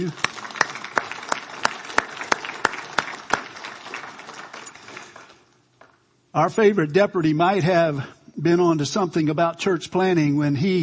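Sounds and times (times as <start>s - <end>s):
speech: 0.0s - 0.3s, 6.3s - 10.8s
room full of people applauding: 0.0s - 6.0s.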